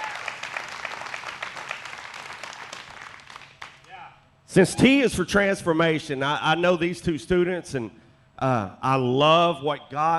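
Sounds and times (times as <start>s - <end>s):
audience applause: 0.0s - 3.8s
speech: 4.5s - 10.1s.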